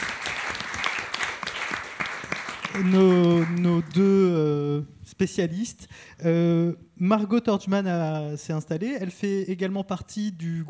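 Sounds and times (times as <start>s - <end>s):
audience applause: 0.0s - 4.0s
speech: 2.8s - 10.6s.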